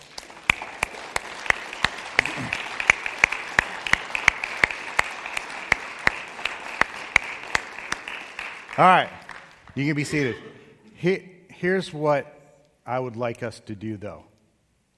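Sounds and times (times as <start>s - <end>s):
sharp rhythmic claps: 0.0s - 9.9s
audience applause: 0.0s - 10.3s
speech: 8.8s - 9.2s, 9.8s - 14.3s.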